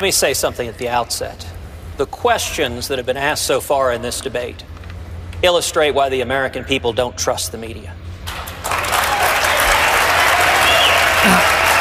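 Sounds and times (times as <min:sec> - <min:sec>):
speech: 0:00.0 - 0:04.7, 0:05.4 - 0:08.4
debate audience applause: 0:08.3 - 0:11.7.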